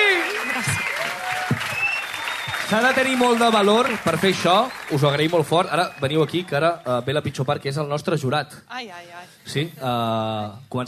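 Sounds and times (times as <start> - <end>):
audience applause: 0.0 - 7.4
speech: 2.7 - 10.8.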